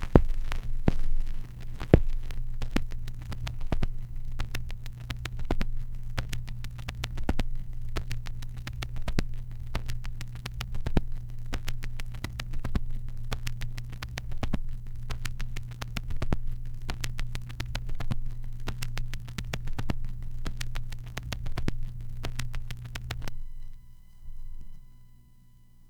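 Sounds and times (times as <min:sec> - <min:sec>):
vinyl static: 0:00.0 - 0:25.8.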